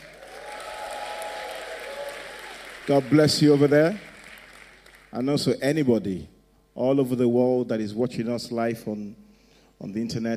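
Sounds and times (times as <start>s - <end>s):
audience cheering and applauding: 0.0s - 5.1s
speech: 2.9s - 4.1s, 5.2s - 9.2s, 9.8s - 10.3s.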